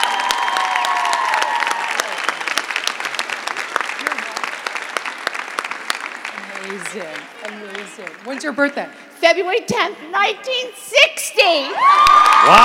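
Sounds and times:
audience applause: 0.0s - 8.7s, 11.8s - 12.6s
speech: 6.9s - 12.6s.

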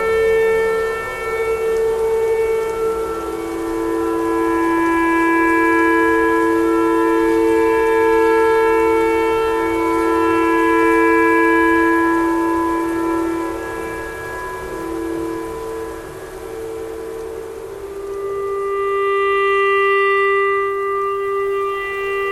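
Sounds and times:
clarinet tornado siren noise: 0.0s - 22.3s.

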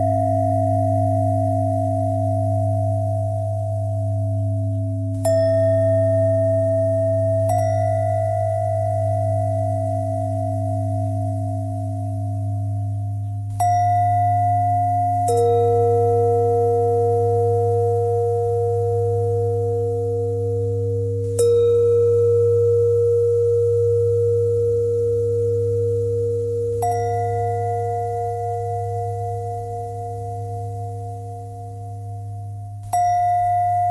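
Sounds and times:
bending bells: 0.0s - 33.8s.

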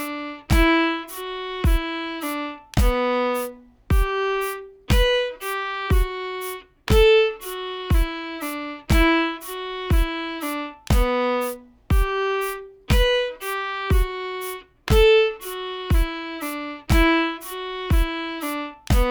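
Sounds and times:
shuffle exercise: 0.0s - 19.0s.

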